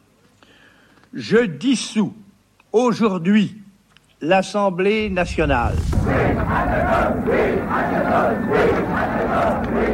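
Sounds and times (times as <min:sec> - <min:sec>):
speech: 0:01.1 - 0:03.6, 0:04.2 - 0:09.1
crowd of demonstrators chanting: 0:05.6 - 0:09.9.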